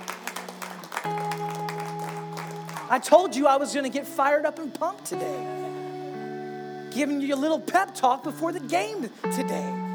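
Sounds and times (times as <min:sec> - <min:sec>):
audience clapping: 0:00.0 - 0:03.4
speech: 0:02.9 - 0:05.8, 0:06.9 - 0:09.8.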